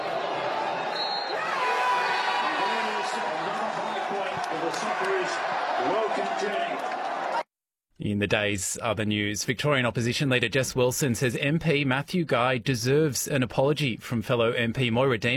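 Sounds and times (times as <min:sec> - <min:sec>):
scattered shouts: 0:00.0 - 0:07.4
large crowd cheering at match end: 0:00.0 - 0:07.5
sharp whistles: 0:00.9 - 0:01.4
speech: 0:08.0 - 0:15.3.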